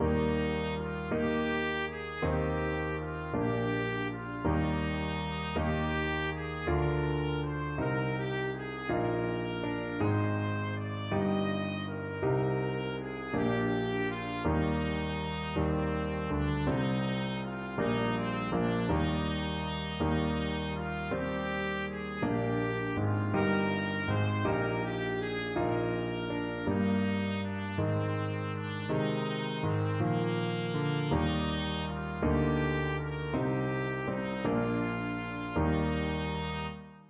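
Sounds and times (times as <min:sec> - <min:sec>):
trumpet: 0:00.0 - 0:37.0.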